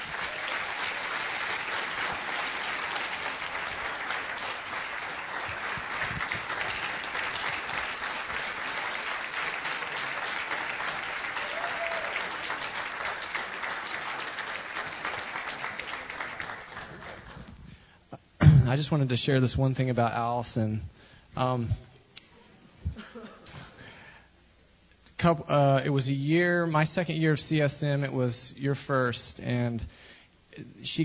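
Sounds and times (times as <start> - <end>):
church audience applauding the students: 0.0 - 17.6
speech: 18.7 - 21.9, 25.2 - 30.0, 30.6 - 31.0.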